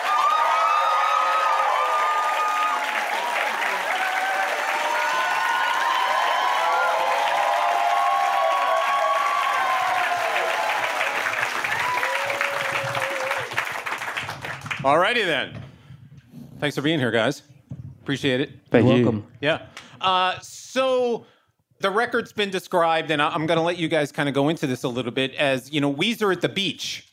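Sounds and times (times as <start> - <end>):
studio audience shouts and whoops: 0.0 - 13.6
studio audience clapping for a rock band on a talk show: 0.0 - 15.4
speech: 14.8 - 15.6, 16.6 - 17.5, 18.1 - 27.1.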